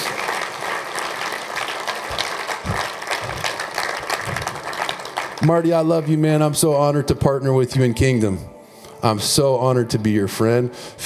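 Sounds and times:
audience clapping hands: 0.0 - 6.6
speech: 5.4 - 11.0.

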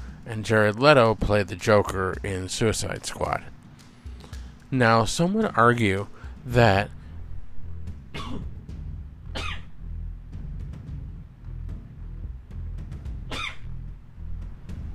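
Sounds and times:
steady low hum: 0.0 - 14.9
speech: 0.3 - 3.6, 4.7 - 7.0
sneezes: 9.4 - 9.7, 13.3 - 13.7.

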